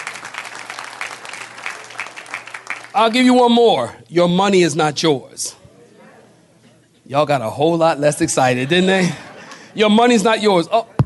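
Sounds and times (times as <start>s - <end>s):
audience clapping: 0.0s - 3.4s
speech: 3.0s - 5.6s, 7.1s - 9.2s, 9.8s - 10.9s
laughter: 8.3s - 11.0s.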